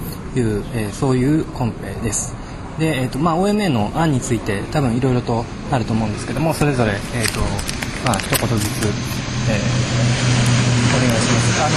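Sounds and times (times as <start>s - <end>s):
airplane flying overhead near airport: 0.0s - 11.7s
speech: 0.4s - 11.7s.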